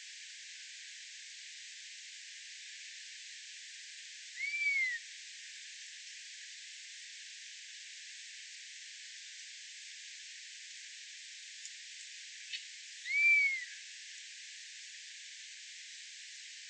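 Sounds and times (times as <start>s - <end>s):
buzzard bird songs: 4.4s - 5.0s, 12.5s - 13.8s.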